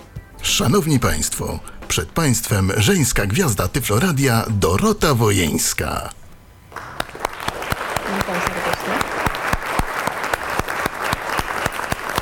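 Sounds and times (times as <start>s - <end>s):
speech: 0.4s - 6.2s
applause from many hands: 6.7s - 12.2s.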